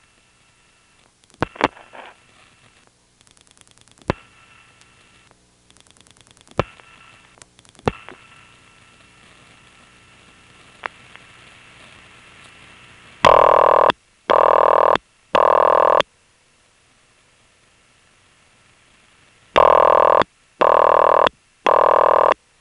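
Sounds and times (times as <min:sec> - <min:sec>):
low mains hum on a called-back trunk line: 0:00.0 - 0:22.6
telephone ring bursts on a called-back trunk line: 0:19.6 - 0:22.4.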